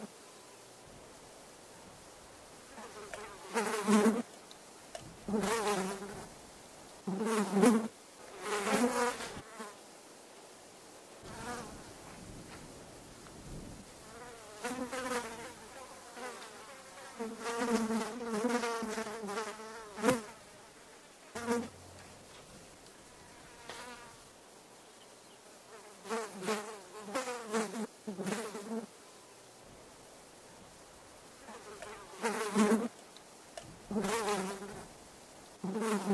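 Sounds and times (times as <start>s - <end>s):
fly buzzing: 2.2s - 4.3s, 4.9s - 6.4s, 7.0s - 9.8s, 11.2s - 12.1s, 14.0s - 24.3s, 25.3s - 29.0s, 31.3s - 33.0s, 33.8s - 34.9s, 35.6s - 36.1s.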